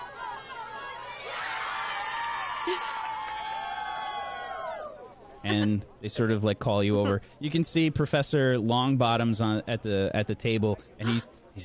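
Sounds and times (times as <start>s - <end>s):
crowd cheering and whooping at the Gryffindor table: 0.0s - 5.1s
speech: 2.6s - 3.0s, 5.4s - 11.6s.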